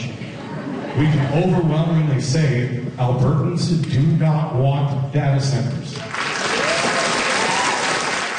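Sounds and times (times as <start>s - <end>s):
laughter: 0.2s - 2.1s
speech: 1.0s - 6.2s
crowd applauding: 5.9s - 8.3s.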